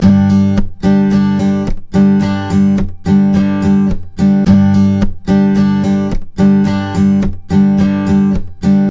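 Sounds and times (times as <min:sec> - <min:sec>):
blues guitar riff: 0:00.0 - 0:08.8.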